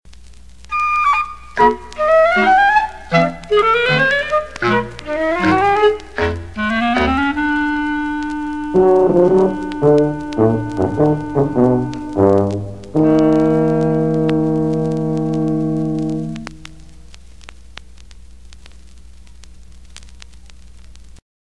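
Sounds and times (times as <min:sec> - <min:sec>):
short cartoon music bridge: 0:00.7 - 0:16.8.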